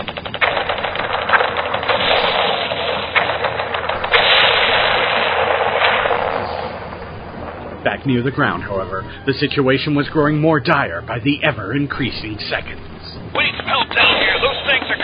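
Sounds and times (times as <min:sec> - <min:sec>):
aircraft machine gun fire: 0:00.0 - 0:07.6, 0:13.4 - 0:15.0
speech: 0:08.0 - 0:15.0.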